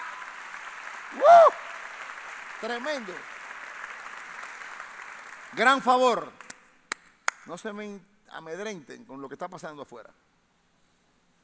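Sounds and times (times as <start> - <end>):
audience applause: 0.0 - 6.5
speech: 2.6 - 3.3, 5.5 - 6.4, 7.4 - 10.2.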